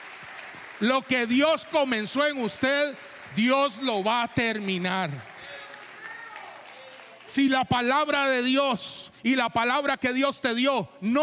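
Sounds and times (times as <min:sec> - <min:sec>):
audience applause: 0:00.0 - 0:07.6
speech: 0:00.8 - 0:05.3, 0:07.3 - 0:11.2.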